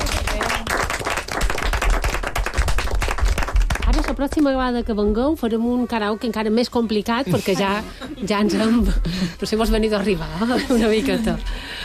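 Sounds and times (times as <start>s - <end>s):
applause from studio guests: 0.0s - 4.5s
speech: 4.1s - 11.7s.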